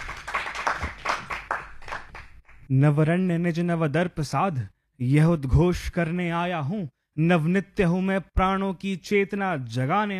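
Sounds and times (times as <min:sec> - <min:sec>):
audience hand clapping welcoming a performer to the stage: 0:00.0 - 0:02.7
speech: 0:02.7 - 0:10.1.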